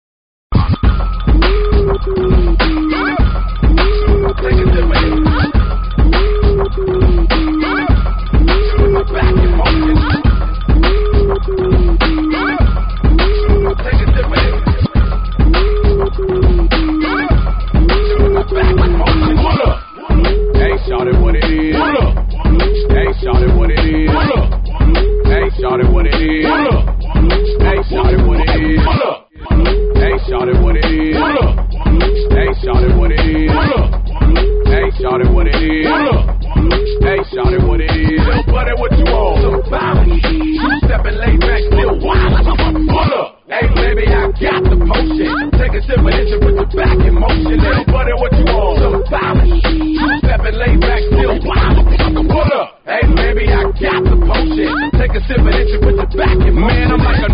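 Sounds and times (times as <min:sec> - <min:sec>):
funk music: 0:00.5 - 0:57.3.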